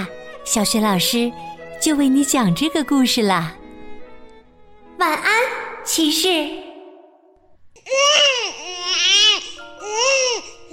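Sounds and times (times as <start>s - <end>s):
speech: 0.5s - 3.6s, 5.0s - 6.7s
newborn baby crying: 7.8s - 10.7s.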